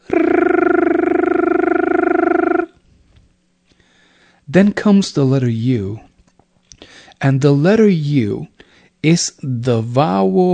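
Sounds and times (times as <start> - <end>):
voice chanting a rolled R imitating a high-pitched engine: 0.0 - 2.8
speech: 4.5 - 6.1, 7.2 - 10.5.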